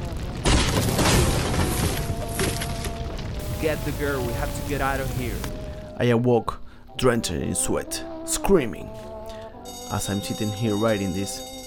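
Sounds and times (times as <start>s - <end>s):
door being broken down: 0.4s - 3.1s
speech: 3.6s - 9.1s, 9.9s - 11.5s.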